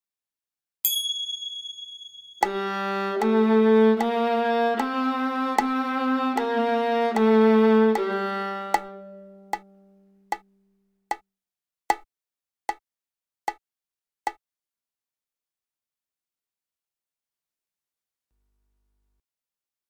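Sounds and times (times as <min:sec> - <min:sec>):
viola G string played: 0:02.4 - 0:10.2.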